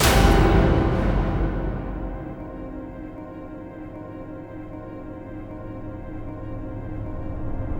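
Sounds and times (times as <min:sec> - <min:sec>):
cluster slam: 0:00.0 - 0:04.1.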